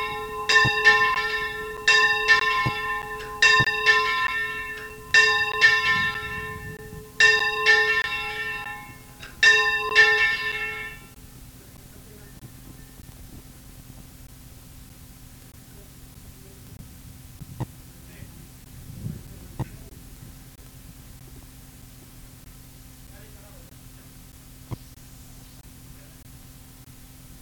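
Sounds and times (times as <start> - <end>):
bell: 0.0 - 11.2.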